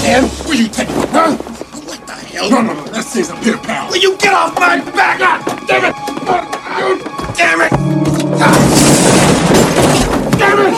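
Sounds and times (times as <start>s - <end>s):
speech: 0.1s - 1.5s, 2.4s - 8.6s
television set smashing: 8.0s - 10.7s
crashing rattling debris: 8.4s - 10.7s.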